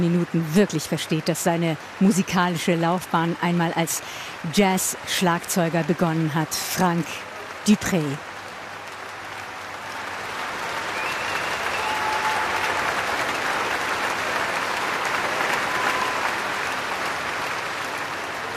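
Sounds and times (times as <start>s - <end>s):
speech: 0.0s - 8.3s
concert audience applauding: 0.0s - 18.5s
faint whistles: 11.0s - 12.7s.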